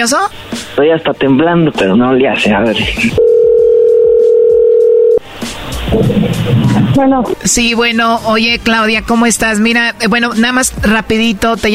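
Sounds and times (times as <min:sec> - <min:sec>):
speech: 0:00.0 - 0:03.3, 0:05.9 - 0:11.7
loud steady telephone tone: 0:03.2 - 0:05.2
noisy telephone line sound: 0:03.2 - 0:05.2.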